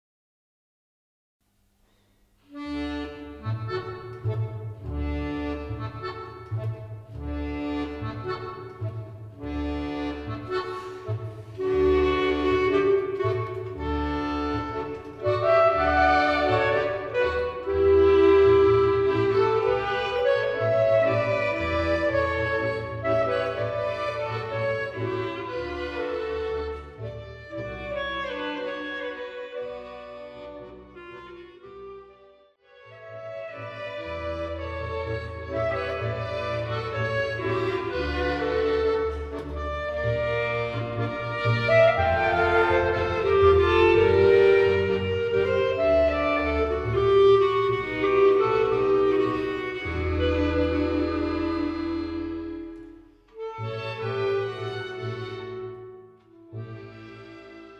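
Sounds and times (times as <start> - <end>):
tango music mix: 2.4 - 57.7.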